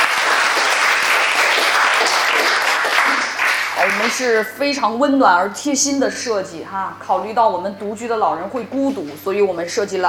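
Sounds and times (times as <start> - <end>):
audience applause: 0.0 - 4.5
speech: 4.1 - 10.0.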